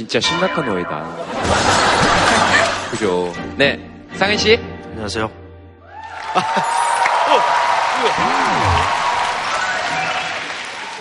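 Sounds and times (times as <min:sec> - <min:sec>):
speech: 0:00.0 - 0:02.3, 0:02.9 - 0:05.4, 0:06.4 - 0:09.0
laughter: 0:01.1 - 0:03.3, 0:06.2 - 0:09.0
audience applause: 0:01.9 - 0:03.0, 0:05.9 - 0:10.9.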